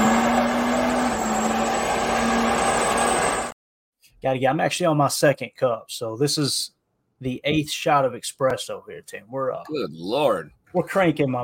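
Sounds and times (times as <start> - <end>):
diesel engine revving: 0.0 - 3.5
speech: 4.2 - 11.4.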